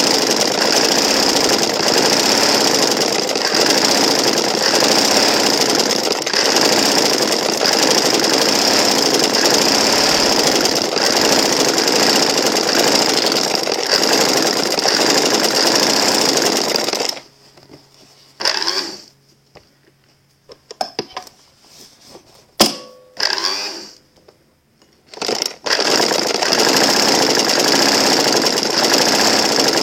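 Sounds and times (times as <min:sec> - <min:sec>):
sewing machine: 0:00.0 - 0:17.3, 0:18.4 - 0:19.1, 0:23.2 - 0:24.0, 0:25.1 - 0:29.8.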